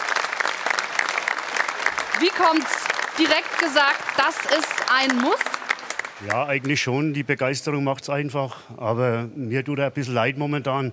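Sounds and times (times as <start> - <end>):
studio audience applause: 0.0 - 7.0
speech: 2.2 - 5.5, 6.2 - 10.9.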